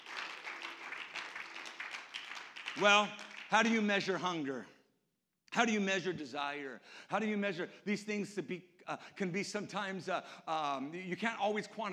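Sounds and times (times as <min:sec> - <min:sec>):
congregation clapping hands in praise during a church service: 0:00.0 - 0:04.3
speech: 0:02.8 - 0:04.8, 0:05.5 - 0:11.9.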